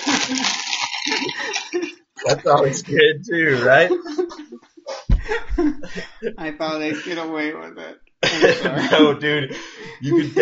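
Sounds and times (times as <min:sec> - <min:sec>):
crunching chips: 0:00.0 - 0:01.9
laughter: 0:00.0 - 0:07.2, 0:08.2 - 0:10.4
speech: 0:00.3 - 0:04.6, 0:05.3 - 0:10.4.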